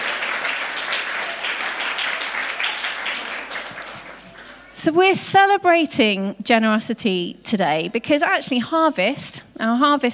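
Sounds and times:
audience applause: 0:00.0 - 0:04.8
speech: 0:04.8 - 0:10.1.

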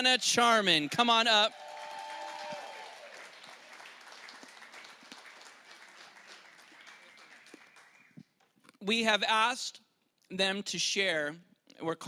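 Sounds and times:
speech: 0:00.0 - 0:01.6, 0:08.8 - 0:12.0
audience applause: 0:00.9 - 0:08.1.

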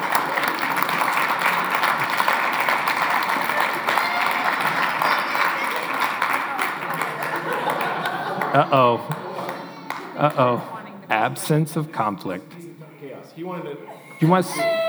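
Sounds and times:
audience applause at an Advent gathering: 0:00.0 - 0:13.4, 0:14.0 - 0:14.8
scattered chuckles: 0:07.2 - 0:12.7
speech: 0:08.6 - 0:09.2, 0:10.2 - 0:12.6, 0:13.4 - 0:14.8.

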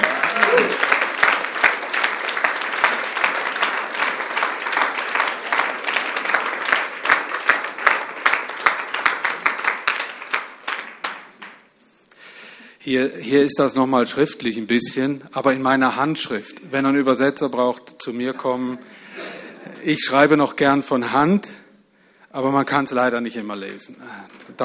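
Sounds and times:
audience applause: 0:00.0 - 0:11.6
speech: 0:12.9 - 0:19.1, 0:19.8 - 0:21.6, 0:22.3 - 0:24.6.

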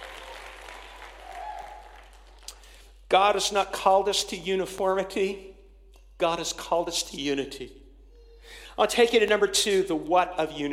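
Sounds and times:
audience clapping: 0:00.0 - 0:02.8
speech: 0:03.1 - 0:05.5, 0:06.2 - 0:07.8, 0:08.5 - 0:10.7.

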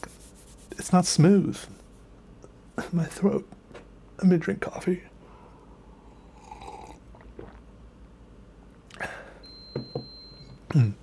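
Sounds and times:
speech: 0:00.8 - 0:01.8, 0:02.9 - 0:03.6, 0:04.2 - 0:05.1, 0:10.8 - 0:11.0
coffee machine beeping as it turns off: 0:09.4 - 0:10.6.

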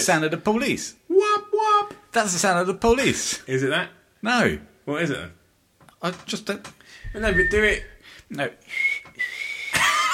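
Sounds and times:
speech: 0:00.0 - 0:05.4, 0:06.0 - 0:08.9
person whistling an imitation of a steam train whistle: 0:07.1 - 0:07.9, 0:08.7 - 0:09.7.

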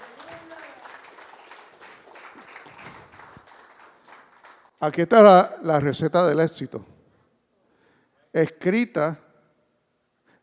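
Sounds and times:
audience applause: 0:00.0 - 0:04.8
speech: 0:04.8 - 0:06.9, 0:08.4 - 0:09.2.

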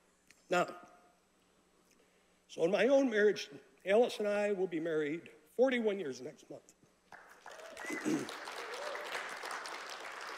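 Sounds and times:
speech: 0:00.5 - 0:00.9, 0:02.5 - 0:06.8
audience clapping: 0:07.1 - 0:10.3.

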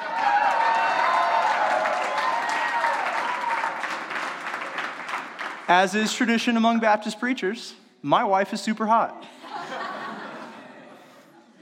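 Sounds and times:
faint whoops and cheers: 0:00.0 - 0:03.9
audience applause: 0:00.0 - 0:06.0
speech: 0:05.7 - 0:09.3
laughter: 0:09.2 - 0:11.5.

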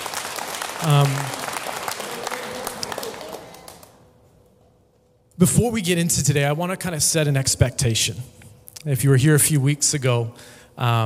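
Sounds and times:
audience clapping: 0:00.0 - 0:04.1
speech: 0:00.8 - 0:01.4, 0:05.4 - 0:11.0.

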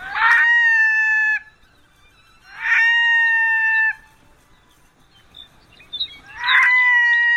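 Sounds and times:
red-throated loon wailing call: 0:00.0 - 0:04.2, 0:06.1 - 0:07.3.

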